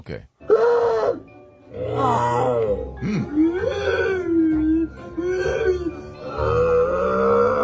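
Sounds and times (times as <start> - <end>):
person imitating a Sasquatch call: 1.8 - 7.6.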